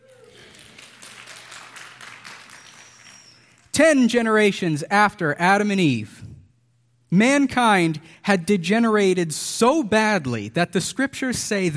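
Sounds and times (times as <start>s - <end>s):
audience applause: 0.0s - 3.7s
speech: 3.8s - 6.2s, 7.1s - 11.7s.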